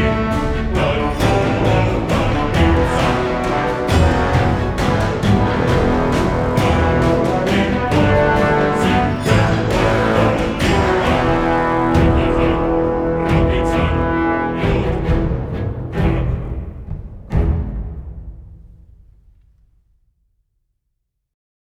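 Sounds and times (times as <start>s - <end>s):
hymn: 0.0s - 17.0s.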